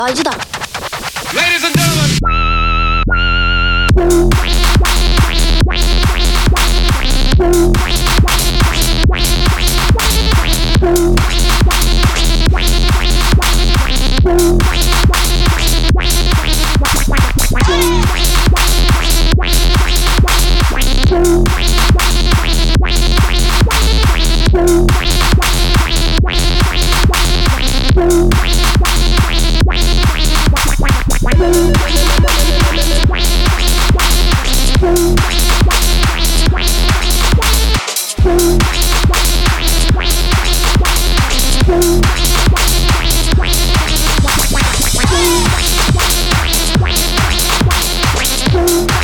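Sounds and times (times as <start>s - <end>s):
bassline: 1.3s - 49.0s.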